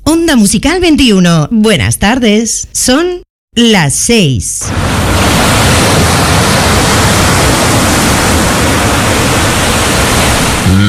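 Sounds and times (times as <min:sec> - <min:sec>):
speech: 0:00.2 - 0:05.6
sea waves breaking on a beach: 0:04.7 - 0:10.8.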